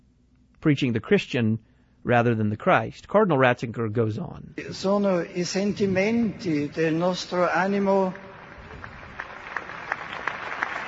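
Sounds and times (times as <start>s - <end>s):
speech: 0.6s - 8.3s
crowd applauding in a square: 6.4s - 10.8s.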